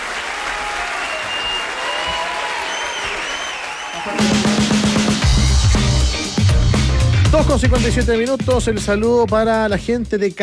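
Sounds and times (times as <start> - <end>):
crowd applauding with dense clapping: 0.0 - 6.1
whistling in a crowd: 0.9 - 4.5
speech: 4.0 - 4.5, 7.4 - 10.4.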